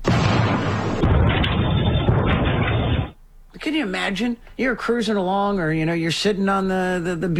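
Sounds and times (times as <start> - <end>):
meteor sonic boom rolling into roaring rumble: 0.0 - 3.2
speech: 3.8 - 7.3.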